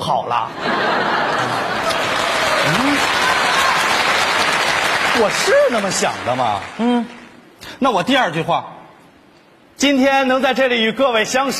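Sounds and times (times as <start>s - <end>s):
speech: 0.1s - 1.7s, 5.2s - 7.2s, 7.8s - 8.8s, 9.8s - 11.5s
laughter: 0.4s - 3.3s
audience applause: 1.4s - 7.2s.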